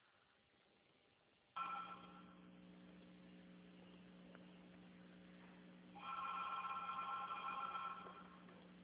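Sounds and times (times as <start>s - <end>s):
telephone ringing over the line during an outgoing call: 1.6s - 2.5s, 6.0s - 8.5s.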